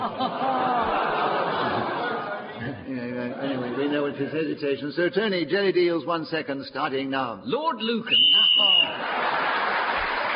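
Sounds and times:
laughter: 0:00.0 - 0:04.4, 0:08.9 - 0:10.3
speech: 0:04.1 - 0:09.1
whistle blown to end a round: 0:08.1 - 0:09.0.

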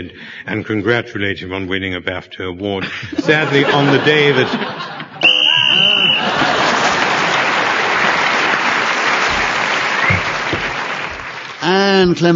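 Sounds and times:
speech: 0:00.0 - 0:05.1, 0:11.7 - 0:12.3
laughter: 0:02.8 - 0:10.6
shrill whistle blast ending the round: 0:05.2 - 0:06.4, 0:09.9 - 0:10.4
audience applause: 0:05.3 - 0:12.0.

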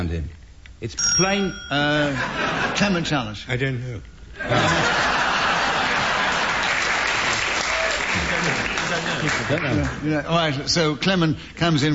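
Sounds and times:
speech: 0:00.0 - 0:05.0, 0:09.1 - 0:11.9
laughter: 0:02.0 - 0:03.2, 0:04.4 - 0:10.0
audience applause: 0:04.7 - 0:10.0.

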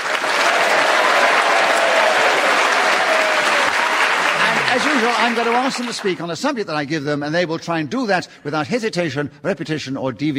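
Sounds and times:
studio audience applauding the players of a comedy panel game: 0:00.0 - 0:06.4
speech: 0:04.8 - 0:10.3.

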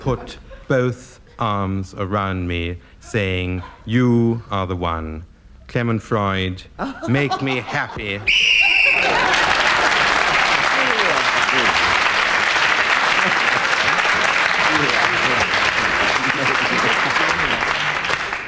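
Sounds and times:
laughter: 0:00.0 - 0:01.7, 0:06.8 - 0:17.8
speech: 0:00.0 - 0:09.4
game whistle blown: 0:08.3 - 0:09.2.

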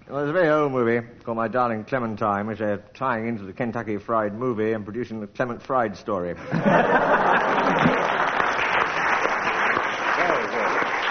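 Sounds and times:
speech: 0:00.1 - 0:08.4
laughter: 0:06.4 - 0:08.6
audience clapping for a comic routine at an estate agents' ball: 0:06.9 - 0:11.0.

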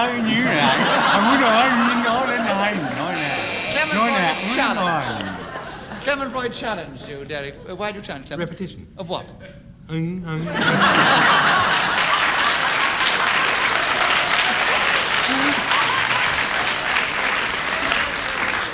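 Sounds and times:
audience chuckles and laughter: 0:00.0 - 0:06.4, 0:10.4 - 0:16.4
audience applause: 0:00.8 - 0:05.6, 0:10.9 - 0:18.7
speech: 0:06.0 - 0:12.0.

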